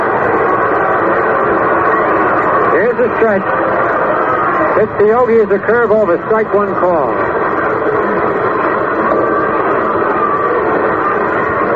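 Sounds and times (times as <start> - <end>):
baseball stadium crowd cheering: 0.0 - 11.7
speech: 3.0 - 3.8, 4.8 - 7.4.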